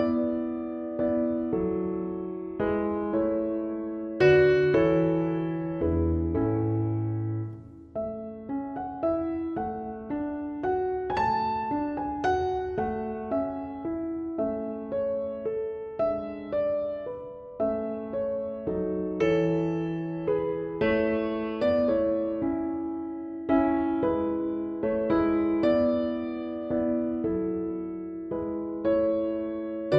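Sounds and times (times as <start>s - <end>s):
piano sonata variation: 0.0s - 29.9s.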